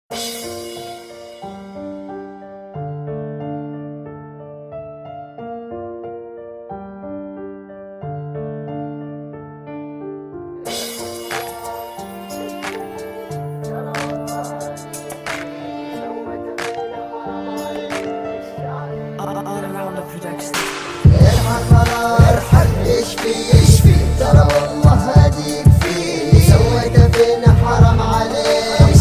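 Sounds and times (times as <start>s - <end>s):
rap music: 10.7s - 29.0s.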